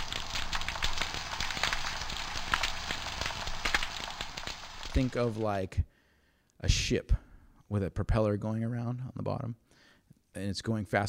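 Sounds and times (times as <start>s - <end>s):
snapping shrimp crackling and popping underwater: 0.0s - 5.4s
speech: 5.0s - 6.0s, 6.6s - 9.6s, 10.3s - 11.0s.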